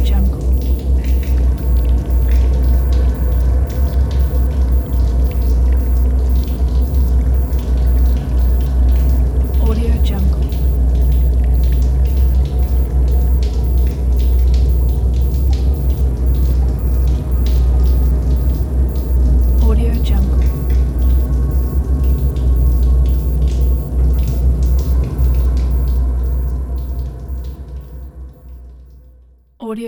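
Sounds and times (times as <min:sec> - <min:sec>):
spaceship ambience: 0:00.0 - 0:28.7.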